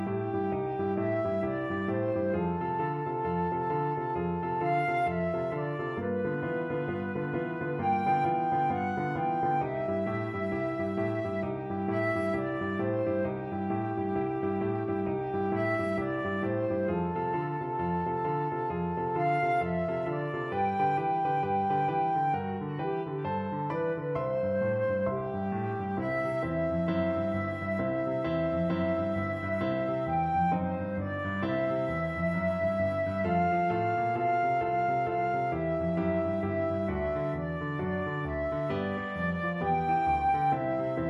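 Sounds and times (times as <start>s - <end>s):
boogie flute: 0.0s - 41.0s.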